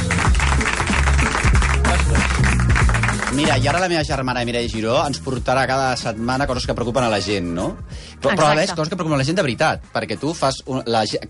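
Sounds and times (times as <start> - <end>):
applause: 0.0 - 4.0
speech: 3.4 - 11.2.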